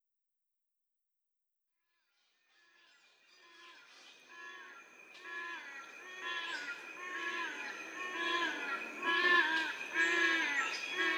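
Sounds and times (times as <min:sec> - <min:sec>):
yellow-casqued hornbills braying calls: 0:05.3 - 0:11.1.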